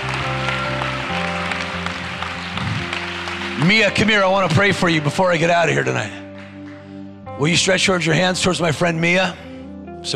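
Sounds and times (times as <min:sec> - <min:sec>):
audience clapping: 0:00.0 - 0:07.2
speech: 0:03.6 - 0:06.2, 0:07.4 - 0:10.1.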